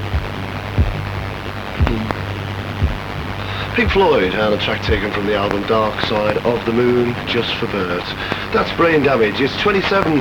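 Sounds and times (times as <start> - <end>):
slow heartbeat thumping: 0.0 - 1.2, 1.8 - 4.3, 4.9 - 5.2
low hum: 0.0 - 8.2
faint static: 0.0 - 10.2
speech: 3.8 - 10.2.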